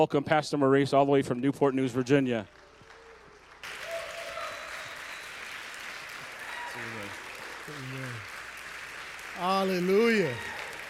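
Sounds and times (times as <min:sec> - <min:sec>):
speech: 0:00.0 - 0:02.6, 0:09.4 - 0:10.6
audience applause: 0:02.4 - 0:10.8
voices whooping: 0:03.7 - 0:05.4, 0:06.3 - 0:07.3, 0:10.0 - 0:10.8.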